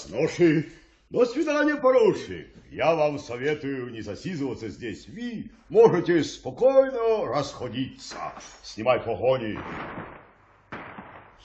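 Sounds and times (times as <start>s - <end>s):
speech: 0.1s - 10.2s
rapid gunfire: 9.6s - 11.4s.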